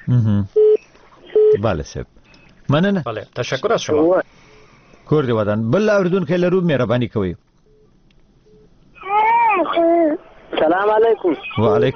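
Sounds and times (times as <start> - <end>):
speech: 0.1 - 0.6, 1.6 - 4.4, 5.1 - 7.5, 10.7 - 11.9
baby crying near a caller on a radio phone line: 9.0 - 10.2.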